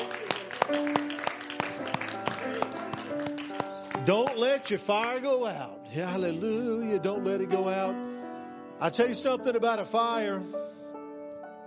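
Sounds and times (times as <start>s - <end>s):
audience hand clapping: 0.0s - 5.1s
speech: 4.0s - 8.0s, 8.8s - 10.7s.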